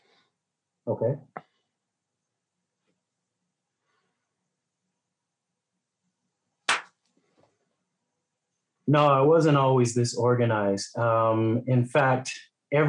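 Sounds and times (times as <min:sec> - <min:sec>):
speech: 0:00.9 - 0:01.4, 0:08.9 - 0:12.8
sharp hand claps: 0:06.7 - 0:07.0
faint soft rustling: 0:07.0 - 0:07.7.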